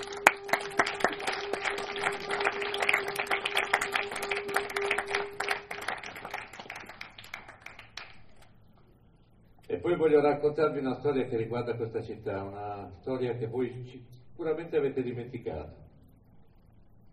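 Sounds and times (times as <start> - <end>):
audience applause: 0.0 - 8.5
faint sustained tone: 0.0 - 17.1
speech: 9.9 - 15.8.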